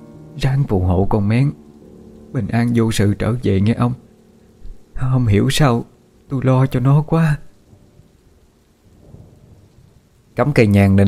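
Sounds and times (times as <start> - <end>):
heavy pouring rain: 0.0 - 11.0
speech: 0.4 - 1.6, 2.3 - 4.0, 5.0 - 7.5, 10.4 - 11.0
low thunder rumbling: 2.4 - 11.0.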